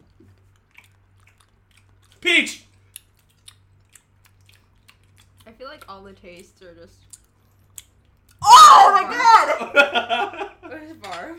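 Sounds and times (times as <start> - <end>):
chewing jelly beans: 0.0 - 8.4
speech: 2.2 - 2.7, 5.6 - 7.1, 9.0 - 11.3
laughter: 9.0 - 10.9.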